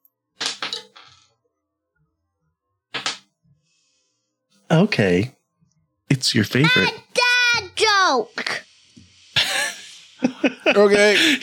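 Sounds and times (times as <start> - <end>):
dice rolling: 0.4 - 1.2, 3.0 - 3.2
speech: 4.7 - 5.4, 6.1 - 8.6, 10.4 - 11.4
laughter: 9.4 - 11.4.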